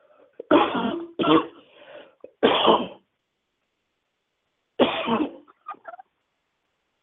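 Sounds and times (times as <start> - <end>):
cough: 0.4 - 1.6, 2.3 - 3.1, 4.8 - 5.6.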